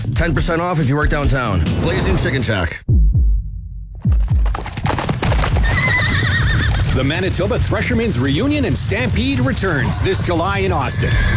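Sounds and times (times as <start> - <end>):
speech: 0.2 - 2.9, 7.0 - 11.3
horse hooves clip-clopping: 4.0 - 10.5
horse whinny: 5.5 - 7.0.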